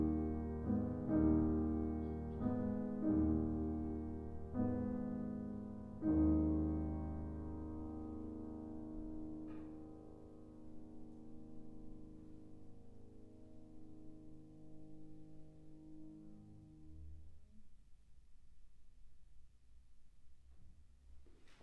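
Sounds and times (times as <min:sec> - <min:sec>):
piano playing: 0:00.0 - 0:17.2.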